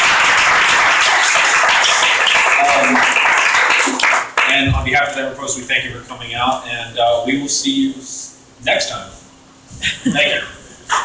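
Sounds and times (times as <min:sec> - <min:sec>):
audience applause at the close of a live panel conversation: 0:00.0 - 0:04.6
speech: 0:04.9 - 0:09.2, 0:09.8 - 0:11.0.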